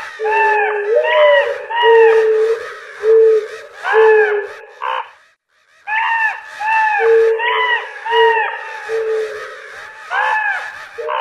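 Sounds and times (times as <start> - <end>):
crow cawing: 0.0 - 11.1.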